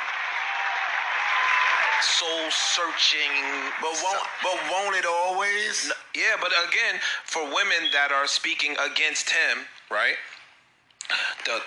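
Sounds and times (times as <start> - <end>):
applause sound effect: 0.0 - 5.4
speech: 2.0 - 10.3, 11.1 - 11.6.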